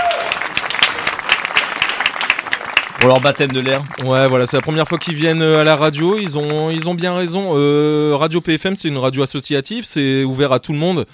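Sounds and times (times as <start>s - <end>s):
small group clapping for guests in a radio studio: 0.0s - 7.1s
speech: 3.0s - 11.1s.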